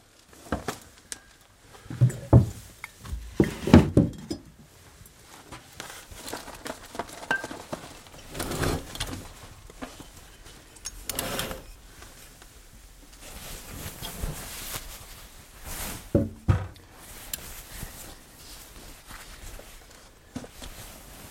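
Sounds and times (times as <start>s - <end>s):
rustling and handling noises: 0.0s - 4.0s, 4.6s - 21.2s
glass items clinking as taken out of shopping bags: 7.2s - 7.6s.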